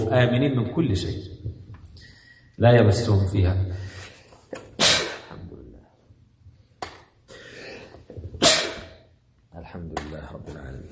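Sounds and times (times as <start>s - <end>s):
speech: 0.0s - 1.5s, 2.6s - 3.9s
person sneezing: 4.6s - 5.4s, 7.4s - 9.0s.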